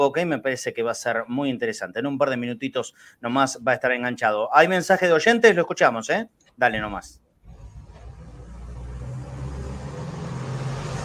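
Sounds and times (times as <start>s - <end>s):
speech: 0.0s - 7.2s
heavy truck passing by: 7.4s - 11.0s.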